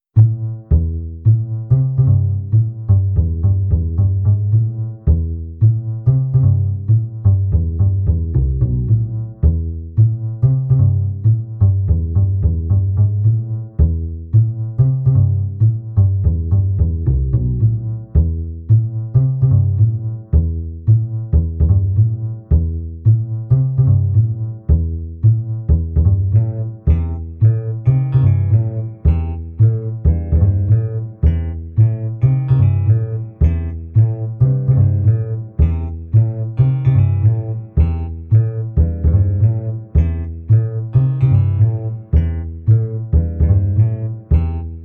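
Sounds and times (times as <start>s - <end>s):
fast backing track: 0.2s - 44.8s.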